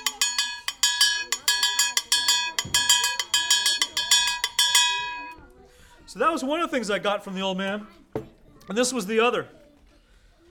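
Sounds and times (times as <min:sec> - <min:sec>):
large artillery shell casing struck like a bell: 0:00.0 - 0:05.4
speech: 0:06.1 - 0:09.6.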